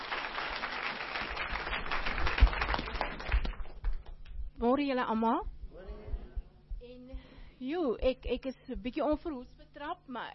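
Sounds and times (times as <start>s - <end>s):
audience clapping hands: 0.0s - 4.4s
speech: 4.6s - 5.5s, 6.9s - 10.3s.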